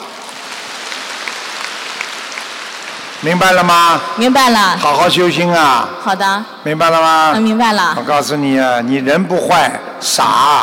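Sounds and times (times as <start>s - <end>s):
audience applause: 0.0s - 4.2s
speech: 3.2s - 10.6s.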